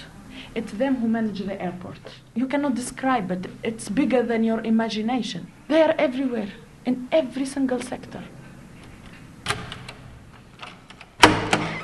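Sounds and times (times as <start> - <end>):
speech: 0.5 - 8.4
office door opening: 7.7 - 11.8.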